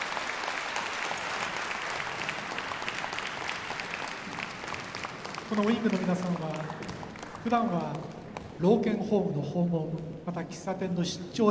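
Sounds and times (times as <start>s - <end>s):
audience applause for a choir: 0.0s - 8.6s
speech: 5.5s - 11.4s.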